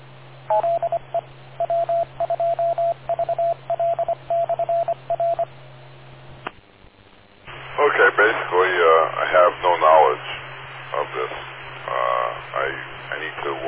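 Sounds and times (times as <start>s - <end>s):
steady radio channel hum: 0.0s - 13.6s
speech: 0.5s - 0.9s
radio repeater short electronic beeps: 1.6s - 5.5s.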